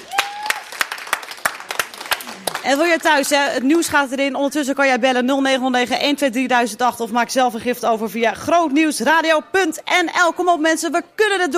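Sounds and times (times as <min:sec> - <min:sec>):
studio audience clapping for a co-presenter during a radio fundraising broadcast: 0:00.0 - 0:03.7
speech: 0:02.6 - 0:11.5.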